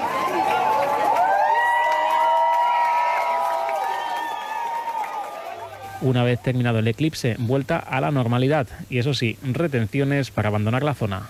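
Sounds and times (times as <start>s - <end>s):
crowd applauding and cheering after eclipse: 0.0s - 6.4s
speech: 6.0s - 11.2s.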